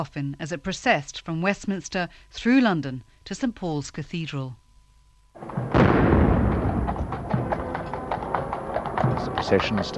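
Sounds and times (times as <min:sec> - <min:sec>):
speech: 0:00.0 - 0:04.6, 0:09.2 - 0:09.9
outdoor noise: 0:00.0 - 0:09.9
heavy artillery salute gun firing: 0:05.4 - 0:07.9.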